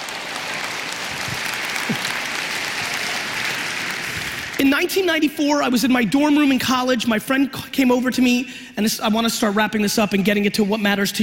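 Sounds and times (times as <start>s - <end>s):
audience applause: 0.0s - 4.6s
speech: 4.6s - 11.2s.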